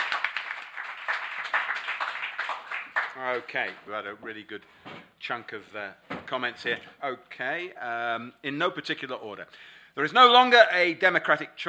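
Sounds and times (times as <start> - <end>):
audience applause: 0.0 - 3.8
speech: 3.2 - 11.6.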